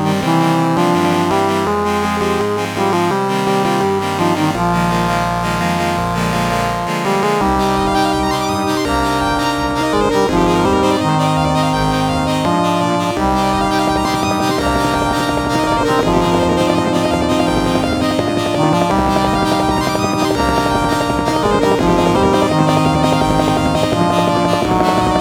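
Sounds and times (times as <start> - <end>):
intro music on an OPL3-SAx sound card: 0.0 - 25.1.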